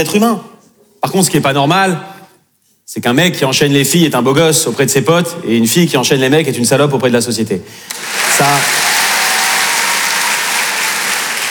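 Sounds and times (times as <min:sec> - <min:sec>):
speech: 0:00.0 - 0:02.1, 0:02.9 - 0:08.9
audience applause: 0:07.9 - 0:11.4.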